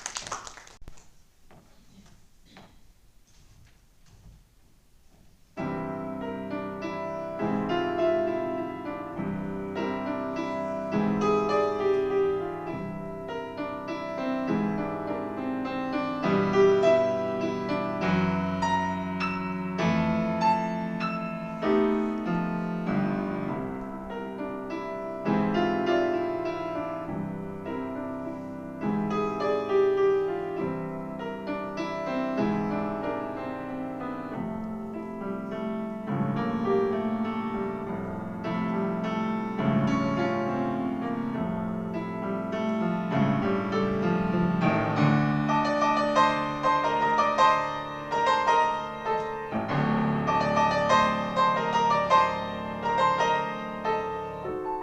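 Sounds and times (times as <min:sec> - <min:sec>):
piano prelude: 0:05.5 - 0:54.8.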